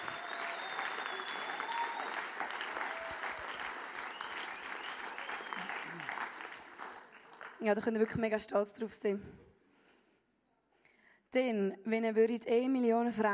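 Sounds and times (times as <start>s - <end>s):
audience applause: 0.0s - 7.8s
speech: 7.6s - 9.5s, 11.4s - 13.3s.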